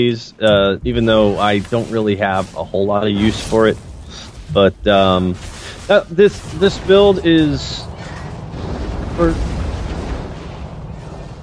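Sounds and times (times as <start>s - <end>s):
speech: 0.0s - 7.9s, 9.2s - 9.5s
loud thunder in a video game: 6.5s - 11.4s.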